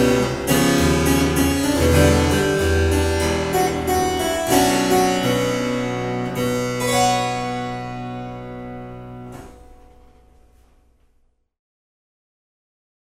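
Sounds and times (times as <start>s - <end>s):
bossa nova on harpsichord: 0.0s - 9.3s.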